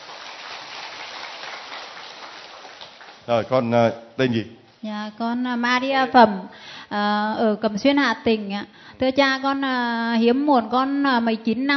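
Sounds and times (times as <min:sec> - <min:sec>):
crowd clapping: 0:00.0 - 0:03.6
speech: 0:03.3 - 0:11.7.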